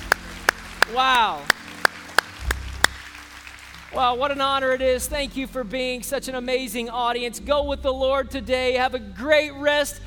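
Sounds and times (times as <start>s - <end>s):
congregation hand clapping at a Sunday church service: 0.0s - 4.8s
speech: 0.9s - 1.6s, 3.9s - 10.0s.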